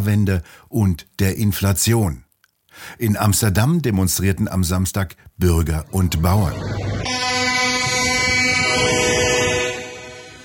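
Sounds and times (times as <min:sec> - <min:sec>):
speech: 0:00.0 - 0:07.3
tractors and trucks honking horns: 0:07.1 - 0:10.4.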